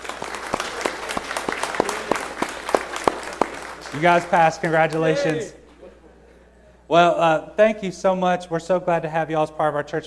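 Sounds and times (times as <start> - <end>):
church audience applauding: 0.0 - 5.6
speech: 3.9 - 5.6, 6.9 - 10.0.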